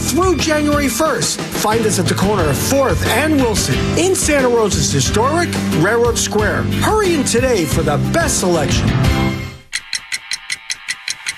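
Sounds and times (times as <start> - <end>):
speech: 0.1 - 9.4
clock ticking in a radio advert: 9.6 - 11.3.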